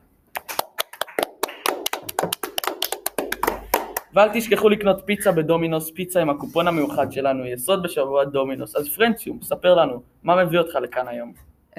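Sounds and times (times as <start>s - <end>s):
hand clapping: 0.3s - 4.2s
speech: 4.2s - 11.7s.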